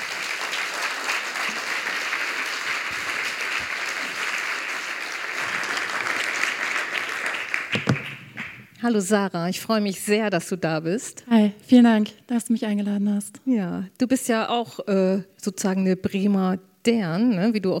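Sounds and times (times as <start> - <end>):
audience applause: 0.0 - 8.7
speech: 8.8 - 17.7.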